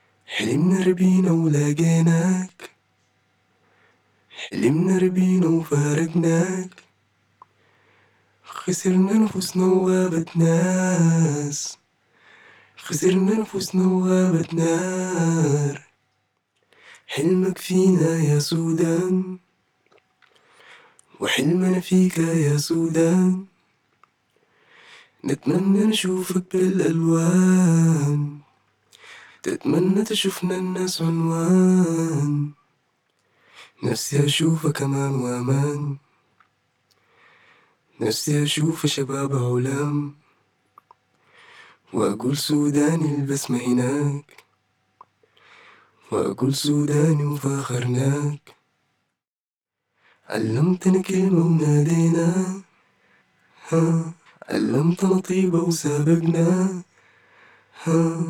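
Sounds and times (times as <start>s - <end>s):
pop RnB a cappella vocals: 0.0s - 2.8s, 4.3s - 7.0s, 8.4s - 11.9s, 12.8s - 16.0s, 17.0s - 19.5s, 20.6s - 23.7s, 25.2s - 32.7s, 33.6s - 36.2s, 37.9s - 40.4s, 41.8s - 44.5s, 46.0s - 48.6s, 50.2s - 52.8s, 53.5s - 58.2s.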